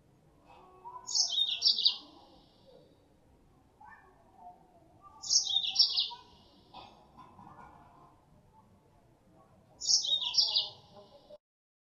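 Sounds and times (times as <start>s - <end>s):
female Mozambique canary calling as lure sound: 0.9s - 2.8s, 5.0s - 6.6s, 9.8s - 11.1s.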